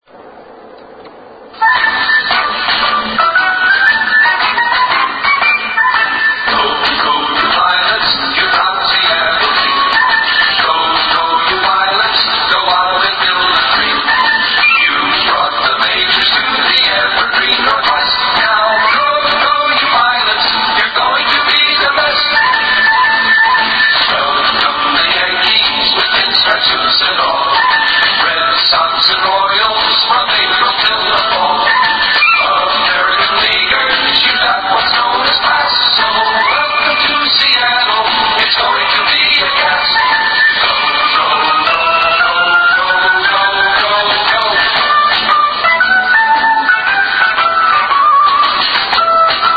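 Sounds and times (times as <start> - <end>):
theme song: 1.6 - 49.5.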